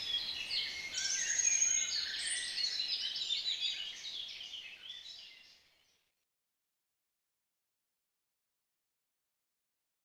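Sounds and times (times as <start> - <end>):
birds twittering: 0.0 - 6.1.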